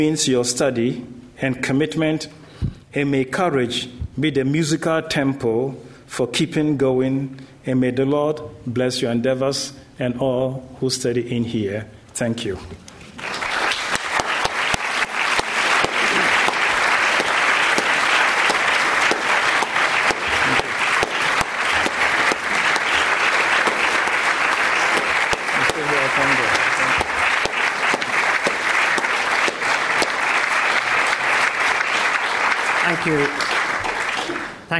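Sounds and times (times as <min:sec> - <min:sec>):
speech: 0:00.0 - 0:12.9
large audience applause: 0:13.1 - 0:34.7.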